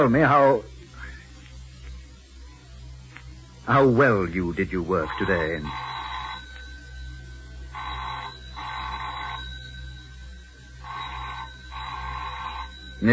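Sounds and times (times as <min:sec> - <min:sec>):
speech: 0:00.0 - 0:00.7, 0:03.7 - 0:05.9
low steady hum: 0:00.0 - 0:13.1
telephone ringing: 0:04.8 - 0:13.1.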